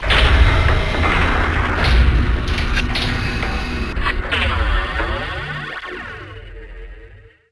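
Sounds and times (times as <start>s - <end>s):
door: 0.0s - 4.6s.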